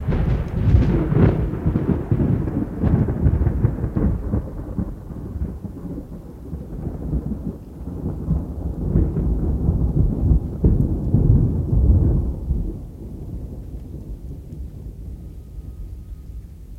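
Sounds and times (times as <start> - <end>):
large thunder crack: 0.0 - 16.7.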